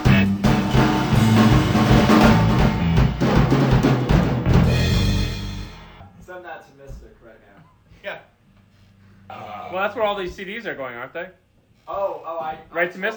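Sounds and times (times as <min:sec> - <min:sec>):
reggae music: 0:00.0 - 0:06.0.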